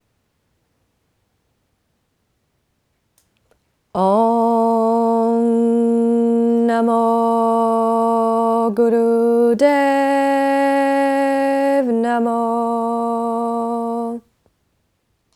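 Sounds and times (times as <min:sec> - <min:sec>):
mantra chanting: 0:04.0 - 0:14.3.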